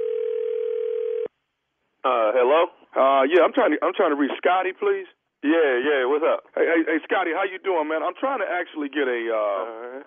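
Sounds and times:
telephone dial tone: 0:00.0 - 0:01.3
speech: 0:02.0 - 0:10.0.

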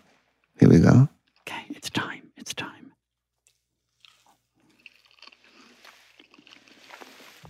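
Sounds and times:
chewing a Gros Michel banana: 0:03.3 - 0:07.4.

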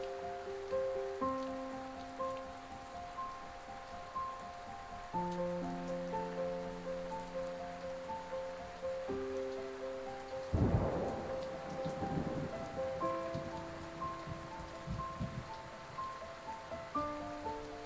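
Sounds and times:
soft piano notes: 0:00.0 - 0:17.8
steady rain: 0:00.0 - 0:17.8
rolling thunder rumble: 0:10.5 - 0:15.7.

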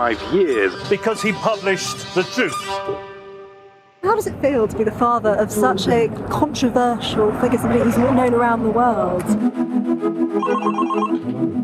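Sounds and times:
speech: 0:00.0 - 0:03.1, 0:04.0 - 0:11.6
telephone ringing: 0:10.4 - 0:11.2.

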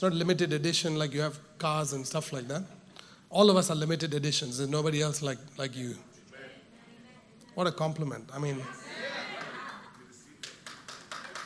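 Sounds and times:
speech: 0:00.0 - 0:06.1, 0:07.6 - 0:09.1
laughter: 0:08.6 - 0:10.3
scattered audience claps during a church sermon: 0:10.3 - 0:11.4.

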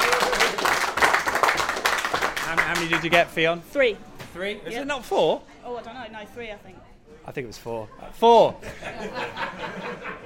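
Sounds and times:
crowd applauding: 0:00.0 - 0:03.3
speech: 0:02.8 - 0:10.1
laughter: 0:07.9 - 0:10.2.

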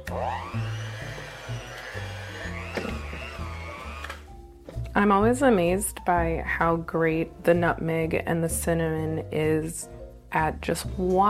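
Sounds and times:
electric hand mixer with paddle attachment on lowest speed mixing dough: 0:00.0 - 0:04.3
speech: 0:00.1 - 0:00.7, 0:05.0 - 0:11.2.

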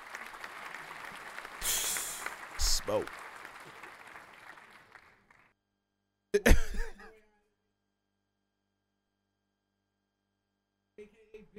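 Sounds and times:
round of applause: 0:00.0 - 0:05.5
speech: 0:02.9 - 0:03.2, 0:06.3 - 0:06.8.

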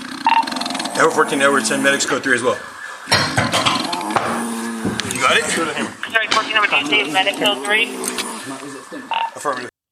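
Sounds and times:
man snoring while unconscious: 0:00.0 - 0:02.3, 0:03.7 - 0:05.6, 0:07.4 - 0:08.6
speech: 0:01.0 - 0:03.4, 0:05.3 - 0:09.7.

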